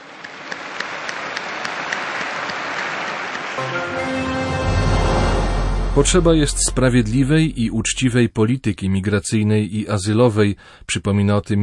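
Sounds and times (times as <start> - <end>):
audience applause: 0.0 - 5.1
speech: 3.6 - 4.6, 6.0 - 11.6.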